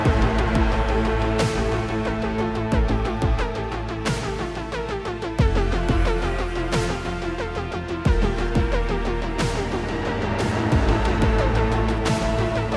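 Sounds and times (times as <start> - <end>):
music: 0.0 - 12.7.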